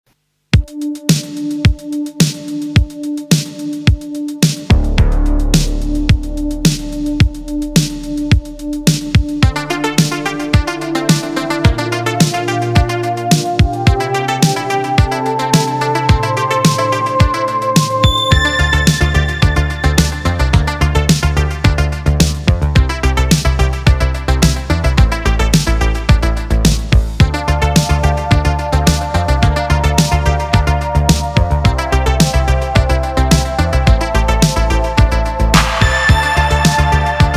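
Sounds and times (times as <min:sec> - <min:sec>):
instrumental cover music: 0:00.5 - 0:37.3.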